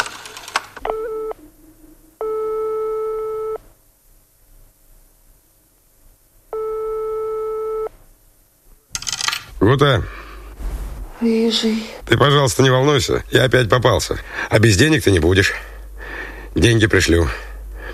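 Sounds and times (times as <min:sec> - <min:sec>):
buzzy telephone line tone after dialing: 0:00.8 - 0:01.4, 0:02.2 - 0:03.6, 0:06.6 - 0:07.9
speech: 0:09.7 - 0:10.2, 0:11.2 - 0:15.7, 0:16.5 - 0:17.5.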